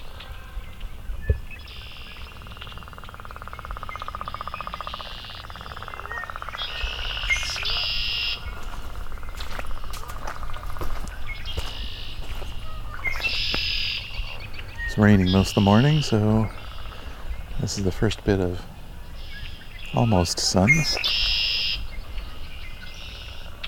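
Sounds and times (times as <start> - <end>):
tree swallows singing: 0.0 - 23.6
speech: 15.0 - 16.6, 17.7 - 18.7, 19.9 - 21.3.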